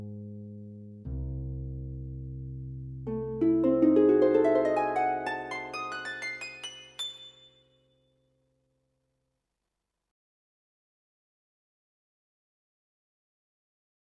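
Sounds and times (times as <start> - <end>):
harp: 3.1 - 7.8.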